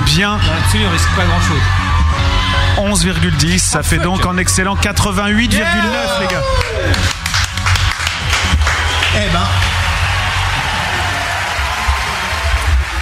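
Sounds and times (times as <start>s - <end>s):
speech: 0.1s - 7.2s, 9.1s - 9.7s
automatic applause sound effect: 6.3s - 13.0s.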